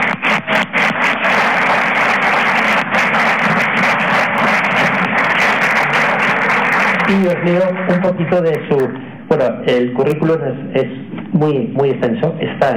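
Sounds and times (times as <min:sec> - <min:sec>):
audience applause: 0:00.0 - 0:08.8
speech: 0:07.1 - 0:12.7.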